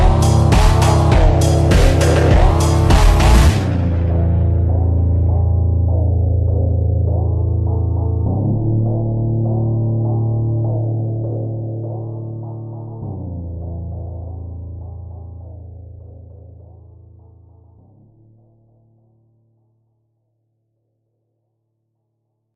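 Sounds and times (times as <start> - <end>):
slowed reverb music: 0.0 - 17.8.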